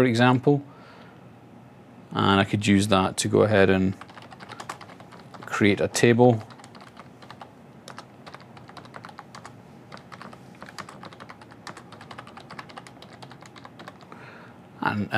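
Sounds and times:
speech: 0.0s - 0.7s, 2.1s - 4.1s, 5.6s - 6.5s, 14.9s - 15.1s
computer keyboard typing a SQL statement: 3.9s - 14.2s.

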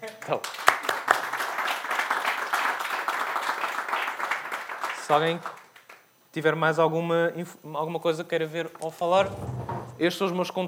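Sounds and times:
speech: 0.3s - 0.7s, 5.1s - 5.6s, 6.3s - 10.6s
audience applause: 0.4s - 5.9s.

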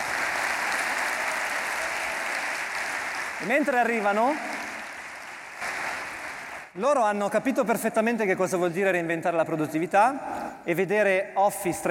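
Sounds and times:
audience applause: 0.0s - 6.8s
speech: 3.4s - 4.5s, 6.8s - 11.8s.

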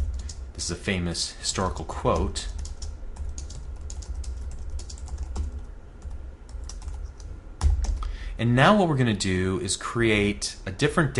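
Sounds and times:
typing code on a computer keyboard: 0.0s - 0.4s, 1.6s - 8.0s
speech: 0.6s - 2.6s, 8.4s - 11.1s.

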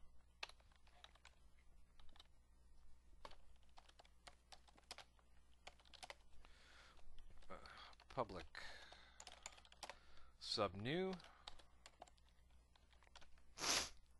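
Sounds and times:
typing on a computer keyboard: 0.4s - 1.4s, 2.0s - 2.3s, 3.2s - 6.2s, 6.9s - 10.0s, 10.9s - 13.4s
speech: 8.2s - 8.8s, 10.6s - 11.3s.

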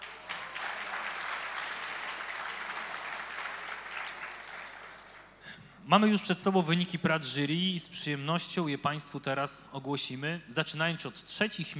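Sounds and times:
audience applause: 0.0s - 5.4s
speech: 5.9s - 11.7s.

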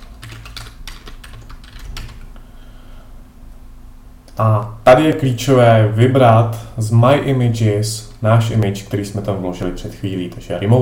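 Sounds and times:
typing a collection name on a computer keyboard: 0.0s - 2.3s, 9.2s - 10.7s
speech: 4.4s - 10.7s.

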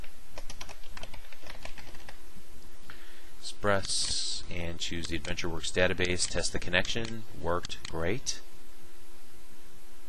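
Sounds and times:
typing on a computer keyboard while entering a SQL Server connection name: 0.4s - 2.2s, 6.0s - 8.0s
speech: 3.6s - 8.5s.

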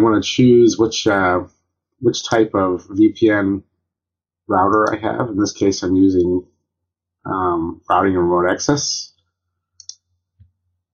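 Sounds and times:
speech: 0.0s - 3.7s, 4.5s - 6.5s, 7.2s - 9.1s
faint mouse clicks on an OK button: 9.8s - 10.5s.

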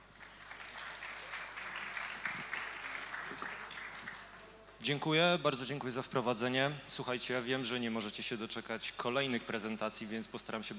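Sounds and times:
audience applause for speaker: 0.0s - 4.4s
speech: 4.8s - 10.7s.

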